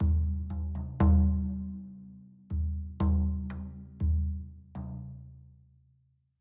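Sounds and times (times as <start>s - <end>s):
drums: 0.0s - 1.8s, 2.5s - 5.0s.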